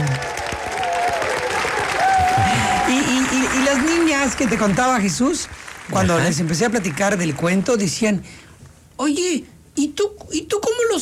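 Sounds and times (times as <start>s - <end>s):
audience applause: 0.0s - 8.0s
speech: 3.7s - 11.0s.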